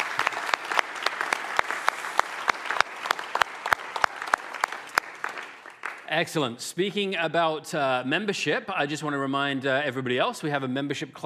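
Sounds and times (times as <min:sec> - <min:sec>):
audience applause: 0:00.0 - 0:06.2
speech: 0:06.1 - 0:11.2.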